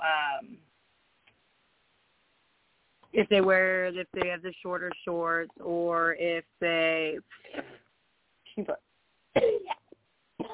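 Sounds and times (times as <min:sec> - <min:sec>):
speech: 0:03.2 - 0:07.8, 0:08.6 - 0:09.8
person coughing from choking on saliva: 0:07.4 - 0:07.8, 0:09.4 - 0:10.5.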